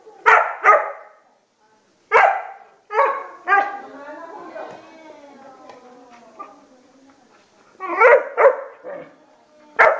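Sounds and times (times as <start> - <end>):
dog barking: 0.3 - 1.2, 2.1 - 3.8, 8.0 - 9.1, 9.8 - 9.9.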